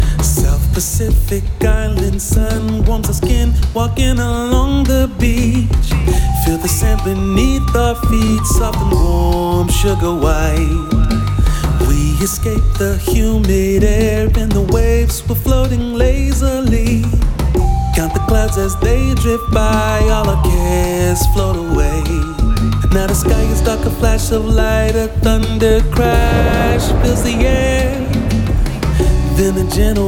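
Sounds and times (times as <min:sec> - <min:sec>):
bossa nova music: 0:00.0 - 0:30.0.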